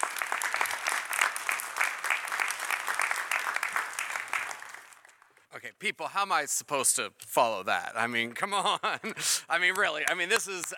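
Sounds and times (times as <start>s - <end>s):
audience applause: 0.0s - 5.4s
speech: 5.6s - 10.7s.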